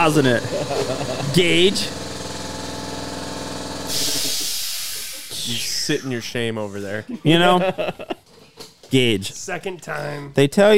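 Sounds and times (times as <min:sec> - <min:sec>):
speech: 0:00.0 - 0:02.0, 0:05.5 - 0:08.2, 0:08.9 - 0:10.7
air compressor running: 0:00.0 - 0:06.4
laughter: 0:00.2 - 0:01.8, 0:07.0 - 0:08.3
loud hiss of air from air compressor: 0:03.8 - 0:06.4.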